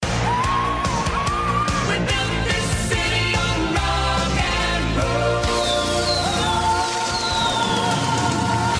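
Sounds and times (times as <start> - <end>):
song: 0.3 - 8.7.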